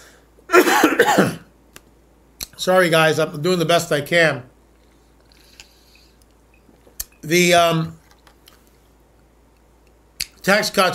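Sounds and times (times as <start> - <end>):
person coughing: 0.5 - 1.5
speech: 1.0 - 1.4, 2.6 - 4.5, 7.2 - 8.0, 10.4 - 10.9.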